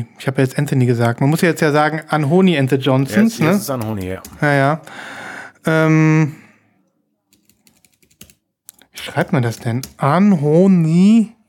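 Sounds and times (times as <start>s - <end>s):
speech: 0.0s - 6.4s, 9.0s - 11.4s
typing on a computer keyboard to search for a name online: 3.6s - 4.4s, 7.3s - 10.0s.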